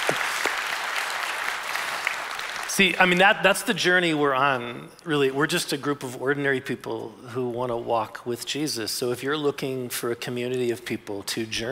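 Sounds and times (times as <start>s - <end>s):
audience clapping: 0.0s - 3.3s
speech: 2.8s - 11.6s.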